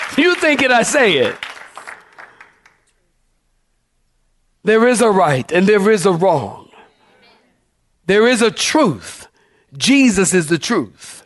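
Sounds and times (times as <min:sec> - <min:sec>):
audience clapping: 0:00.0 - 0:03.0
speech: 0:00.2 - 0:01.5, 0:04.6 - 0:06.6, 0:08.1 - 0:11.2.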